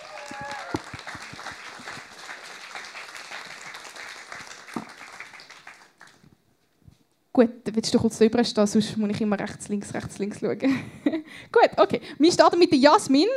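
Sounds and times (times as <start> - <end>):
audience clapping: 0.0 - 6.4
speech: 7.4 - 13.3.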